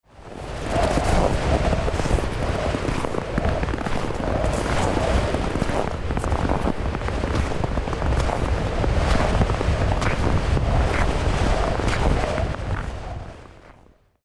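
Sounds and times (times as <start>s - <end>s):
snow creaking: 0.2s - 13.9s.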